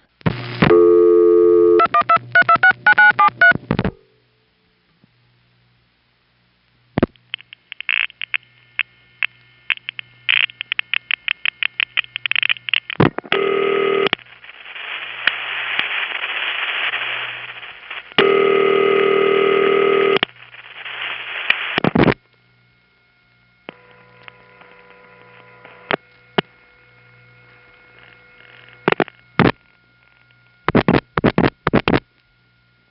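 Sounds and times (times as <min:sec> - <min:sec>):
buzzing hums and tones from automatic testing equipment: 0:00.0 - 0:04.6, 0:06.7 - 0:32.8
telephone ringing on an exchange line: 0:13.4 - 0:14.1, 0:18.2 - 0:20.2.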